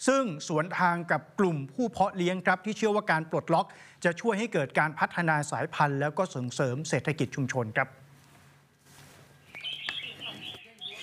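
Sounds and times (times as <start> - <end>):
speech: 0.0 - 8.0
red-whiskered bulbuls calling at a breeding farm in Khlong Hae: 9.4 - 11.0.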